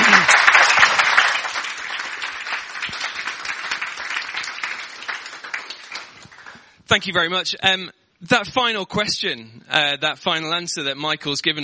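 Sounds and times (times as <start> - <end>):
audience applause: 0.0 - 6.8
speech: 6.9 - 11.6.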